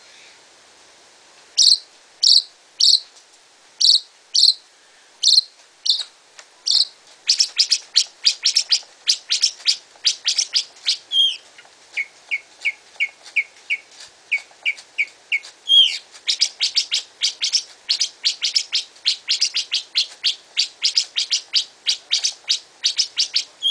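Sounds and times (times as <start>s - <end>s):
Greater green leafbird cage bird singing: 1.6s - 3.1s, 3.8s - 4.6s, 5.2s - 6.1s, 6.7s - 23.6s.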